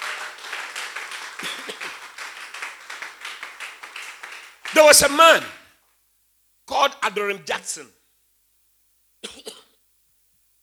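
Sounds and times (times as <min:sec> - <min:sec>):
audience clapping hands: 0:00.0 - 0:05.6
speech: 0:01.4 - 0:01.8, 0:04.8 - 0:05.6, 0:06.8 - 0:08.0.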